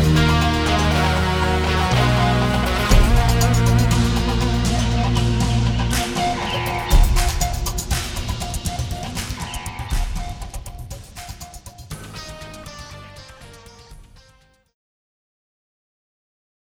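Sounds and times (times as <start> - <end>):
German heavy metal music: 0.0 - 14.5.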